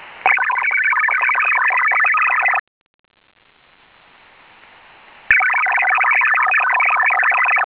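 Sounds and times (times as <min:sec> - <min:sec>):
military HF radio link protection signal: 0:00.2 - 0:03.8, 0:05.3 - 0:07.6.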